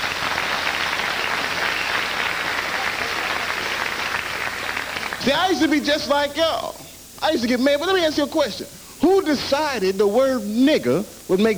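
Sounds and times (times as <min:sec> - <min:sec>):
round of applause: 0:00.0 - 0:05.8
speech: 0:05.2 - 0:11.5.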